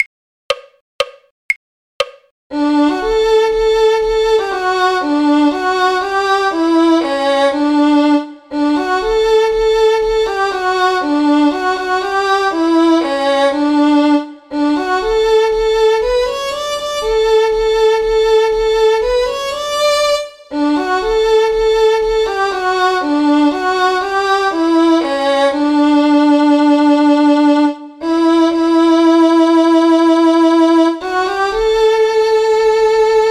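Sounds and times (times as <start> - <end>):
violin: 2.5 - 33.2.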